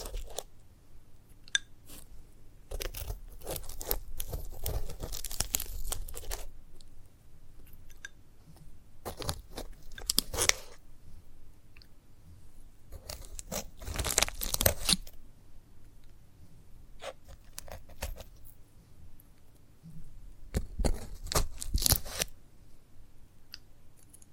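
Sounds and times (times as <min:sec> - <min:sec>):
sunflower head crunching and tearing when handled: 0:00.0 - 0:00.5, 0:02.7 - 0:06.5, 0:09.0 - 0:10.8, 0:13.0 - 0:15.2, 0:20.6 - 0:22.3.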